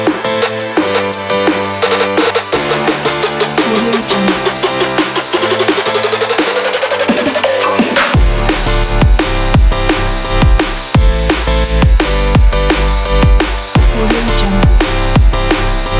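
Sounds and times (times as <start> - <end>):
bass drum: 0.0 - 7.4, 8.1 - 15.9.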